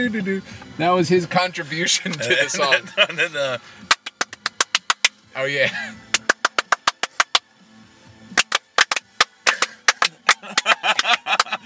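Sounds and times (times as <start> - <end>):
speech: 0.0 - 3.9, 5.4 - 6.1
laughter: 2.1 - 3.6, 9.6 - 11.6
hand claps in a song remix: 3.8 - 5.2, 6.1 - 7.5, 8.4 - 11.6.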